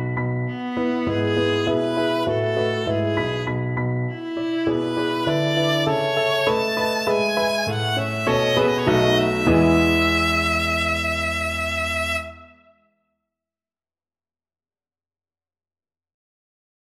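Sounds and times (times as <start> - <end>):
viola playing a sonata: 0.0 - 12.7.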